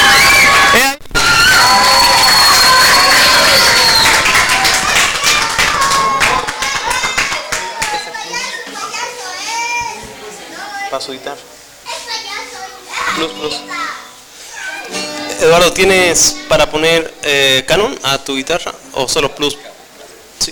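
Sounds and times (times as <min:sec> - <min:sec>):
applause from a children's birthday party crowd: 0:00.0 - 0:08.0
children's voices and shouts: 0:00.0 - 0:11.0, 0:11.9 - 0:16.6
speech: 0:11.0 - 0:11.5, 0:13.2 - 0:13.8, 0:14.9 - 0:19.7.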